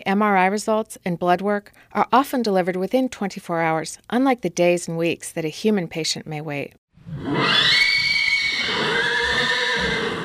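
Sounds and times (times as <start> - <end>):
speech: 0.0 - 7.9
horses neighing at a thoroughbred farm near Lexington: 7.1 - 10.2.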